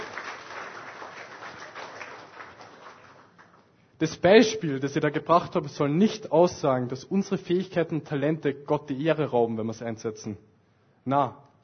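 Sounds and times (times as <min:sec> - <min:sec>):
audience applause: 0:00.0 - 0:03.7
speech: 0:04.0 - 0:11.6.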